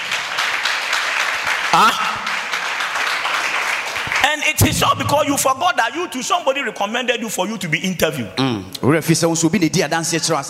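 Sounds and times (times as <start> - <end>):
audience clapping: 0.0 - 5.6
speech: 1.7 - 2.1, 4.2 - 10.4.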